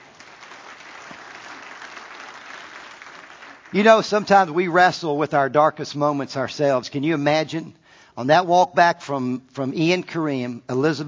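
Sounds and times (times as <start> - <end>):
audience clapping: 0.0 - 4.4
speech: 3.7 - 11.0.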